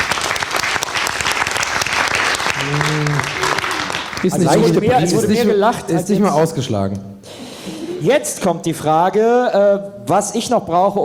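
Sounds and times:
audience applause: 0.0s - 5.4s
speech: 4.2s - 7.1s, 8.0s - 11.0s.

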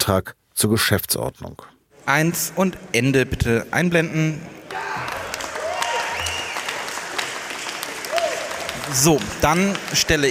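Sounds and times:
speech: 0.0s - 5.2s, 8.9s - 10.2s
delegates cheering at party conference: 4.6s - 10.2s.

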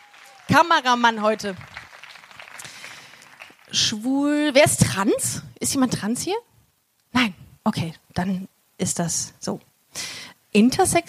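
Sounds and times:
small audience applause: 0.0s - 4.0s
speech: 0.5s - 1.7s, 3.8s - 6.5s, 7.2s - 11.0s.

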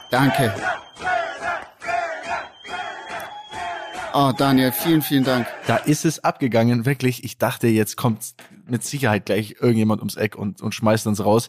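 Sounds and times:
beer tent crowd cheering and shouting: 0.0s - 6.0s
speech: 0.1s - 1.2s, 4.2s - 11.4s.

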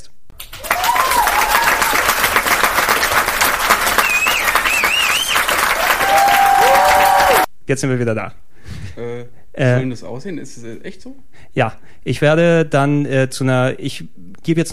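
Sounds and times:
digital crowd applause sound effect: 0.4s - 7.5s
cheering whistles: 0.6s - 2.2s, 3.7s - 7.5s
speech: 7.7s - 14.7s.

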